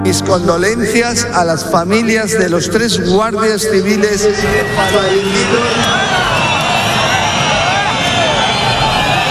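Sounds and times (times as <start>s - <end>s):
speech: 0.1s - 6.3s
crowd booing: 4.0s - 9.2s.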